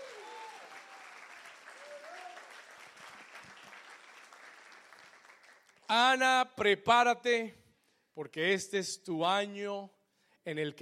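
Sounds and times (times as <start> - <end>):
vocal cheers: 0.0 - 1.1, 1.7 - 2.5
audience applauding: 0.0 - 5.9
speech: 5.9 - 7.6, 8.2 - 10.8.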